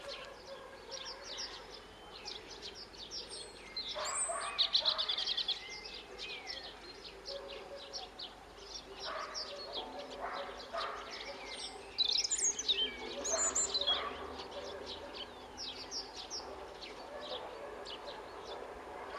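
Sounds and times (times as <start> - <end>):
European robin giving high sweeping notes: 0.0 - 19.1.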